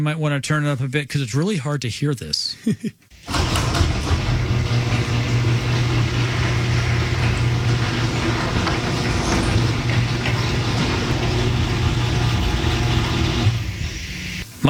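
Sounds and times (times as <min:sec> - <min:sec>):
speech: 0:00.0 - 0:03.8
garage door motor humming: 0:03.2 - 0:14.6
garage door running on nylon rollers: 0:03.2 - 0:14.6.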